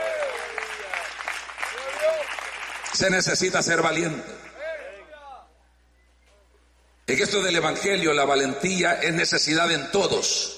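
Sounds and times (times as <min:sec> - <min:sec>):
audience applause: 0:00.0 - 0:03.0
speech: 0:03.0 - 0:04.5, 0:07.1 - 0:10.5.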